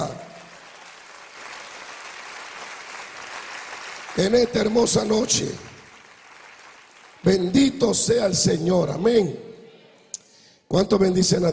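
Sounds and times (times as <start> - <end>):
congregation applause during an evening church service: 0.0 - 8.5
speech: 4.2 - 5.7, 7.2 - 9.4, 10.7 - 11.5.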